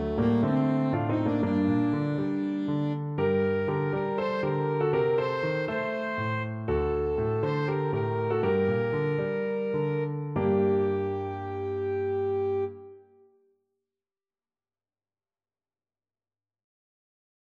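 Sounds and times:
alto saxophone: 0.0s - 13.3s.

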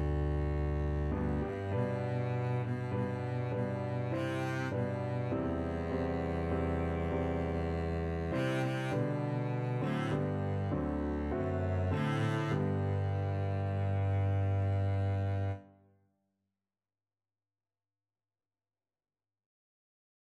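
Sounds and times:
double bass: 0.0s - 15.6s.

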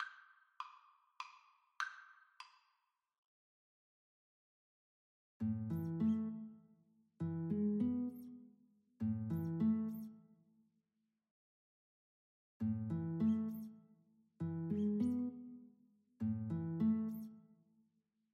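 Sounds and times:
classical guitar duet: 5.4s - 6.6s, 7.2s - 8.4s, 9.0s - 10.1s, 12.6s - 13.7s, 14.4s - 15.6s, 16.2s - 17.4s.

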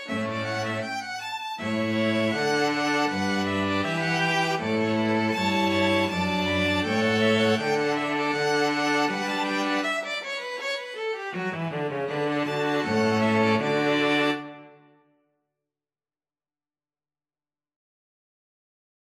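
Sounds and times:
string quartet playing a gavotte: 0.0s - 14.8s.

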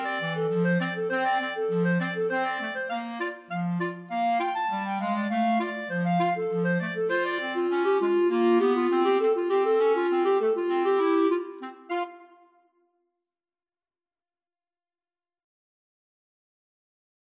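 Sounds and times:
clarinet duet: 0.0s - 12.6s.

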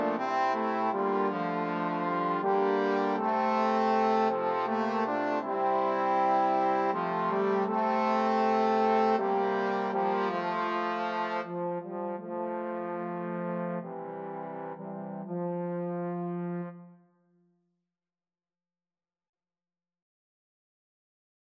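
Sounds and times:
trombone quartet playing: 0.0s - 17.0s.

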